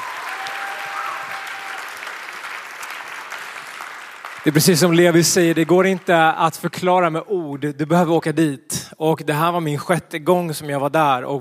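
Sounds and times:
audience applause: 0.0s - 6.7s
speech: 4.4s - 11.4s.

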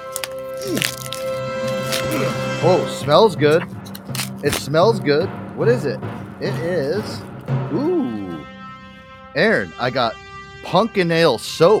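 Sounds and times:
bubble wrap pulled off a package crackling and popping: 0.0s - 2.6s, 3.6s - 4.7s, 6.0s - 7.5s
speech: 0.6s - 1.1s, 2.6s - 3.8s, 4.4s - 8.2s, 9.3s - 11.7s.

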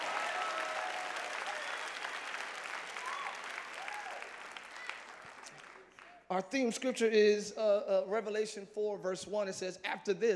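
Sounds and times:
audience clapping hands: 0.0s - 6.3s
speech: 6.3s - 10.3s.

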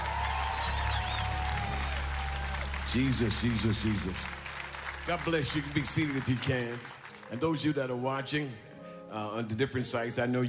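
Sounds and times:
hands clapping: 0.0s - 7.5s
speech: 2.9s - 4.4s, 5.1s - 10.4s.

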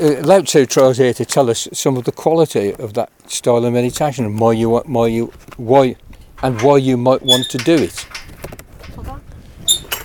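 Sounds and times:
speech: 0.0s - 8.2s
gate scraping: 6.2s - 9.0s, 9.7s - 10.0s
squeaky gate creaking open: 6.4s - 8.4s, 9.7s - 10.0s.

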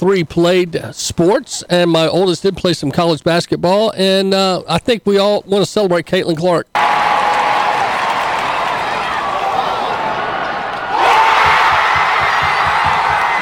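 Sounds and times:
speech: 0.0s - 6.8s
basketball crowd cheering at record shot: 6.8s - 13.4s.

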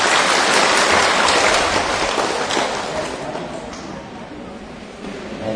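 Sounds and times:
crowd applause: 0.0s - 3.8s.

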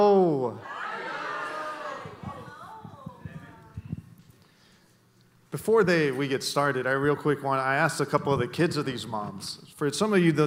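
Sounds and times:
excited crowd cheering and shouting welcoming guests onstage: 0.5s - 3.8s
speech: 5.6s - 10.4s.

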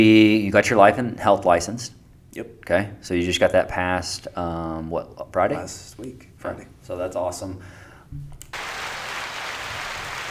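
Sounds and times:
speech: 0.0s - 8.3s
hands clapping: 8.5s - 10.2s.

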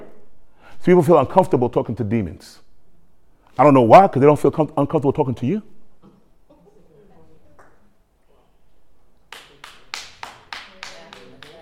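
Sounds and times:
speech: 0.8s - 2.6s, 3.6s - 5.7s
one person clapping: 9.3s - 11.6s.

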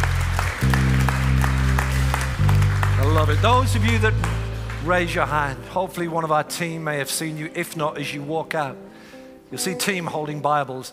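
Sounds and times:
church congregation clapping to congratulate people: 0.0s - 5.8s
loud sustained low keyboard chord: 0.0s - 10.7s
speech: 3.2s - 8.9s, 9.5s - 10.9s.

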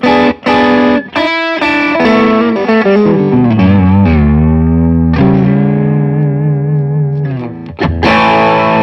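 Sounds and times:
electric guitar played through an overdrive pedal: 0.0s - 8.8s.

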